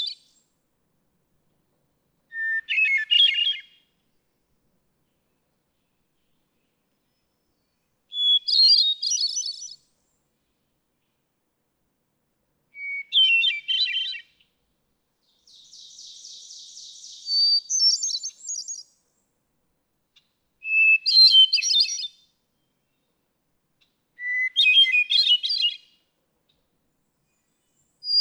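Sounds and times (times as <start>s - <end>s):
hermit thrush singing: 2.3s - 3.8s, 6.6s - 9.8s, 12.8s - 14.4s, 15.3s - 19.0s, 20.6s - 23.0s, 24.2s - 25.9s, 27.3s - 28.2s.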